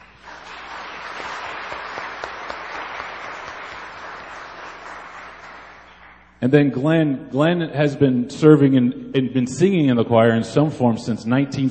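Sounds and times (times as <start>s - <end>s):
audience applause: 0.0s - 6.2s
speech: 6.4s - 11.6s.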